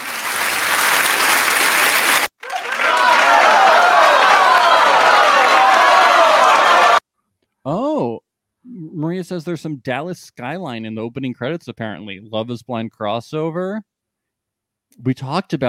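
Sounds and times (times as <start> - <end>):
audience applause: 0.0 - 7.0
speech: 9.2 - 13.9, 14.9 - 15.6.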